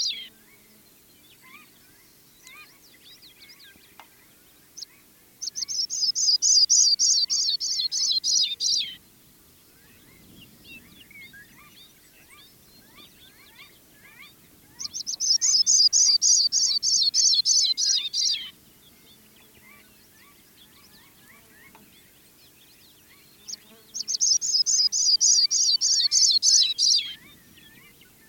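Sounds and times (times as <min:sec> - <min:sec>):
Sprague's pipit calling: 0:05.4 - 0:09.0, 0:12.9 - 0:18.5, 0:24.0 - 0:27.3.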